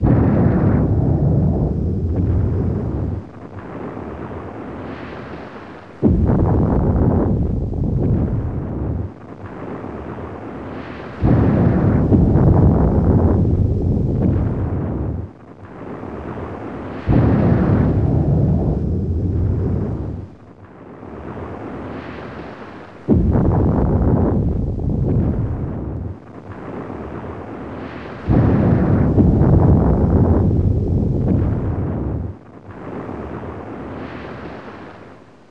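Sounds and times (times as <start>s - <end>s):
volcano: 0.0s - 35.4s.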